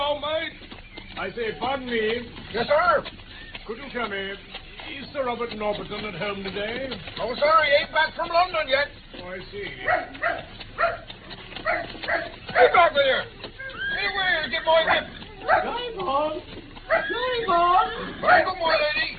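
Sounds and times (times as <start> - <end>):
speech: 1.2 - 10.6, 12.0 - 13.4, 14.4 - 19.0
dog barking and yipping excitedly: 9.8 - 12.8, 14.8 - 15.8, 16.9 - 17.1.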